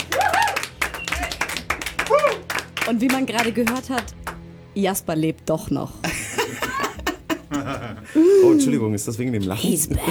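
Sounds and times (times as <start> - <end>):
audience applause: 0.0 - 4.0
speech: 2.9 - 4.2, 4.8 - 6.3, 7.6 - 10.0
laughter: 6.0 - 9.0.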